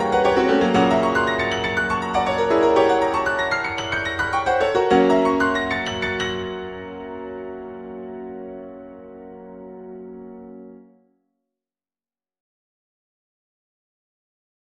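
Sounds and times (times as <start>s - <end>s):
piano: 0.0s - 11.1s.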